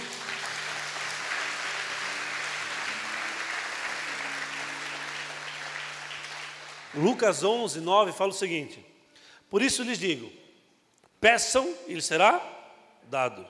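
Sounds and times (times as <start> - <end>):
church congregation applause: 0.0 - 7.2
speech: 6.9 - 8.9, 9.5 - 10.4, 11.2 - 12.5, 13.1 - 13.4.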